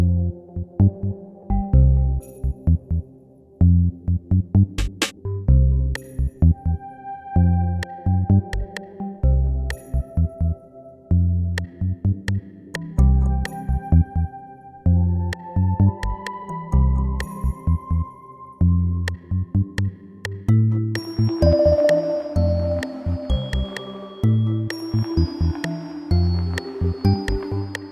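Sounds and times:
Christmas theme music: 0.2 - 27.9.

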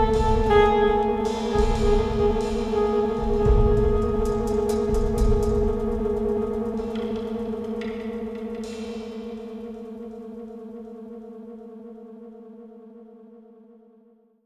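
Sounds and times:
spooky jazz music: 0.0 - 9.4.

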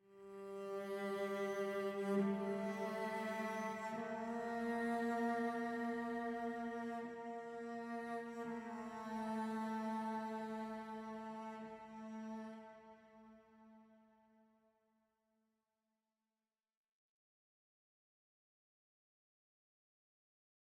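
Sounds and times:
cellos playing: 0.2 - 13.2.

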